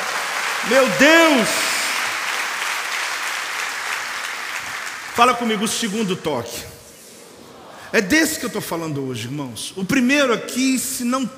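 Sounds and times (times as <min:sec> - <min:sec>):
church audience applause: 0:00.0 - 0:05.6
speech: 0:00.6 - 0:01.7, 0:05.2 - 0:06.8, 0:07.9 - 0:11.3.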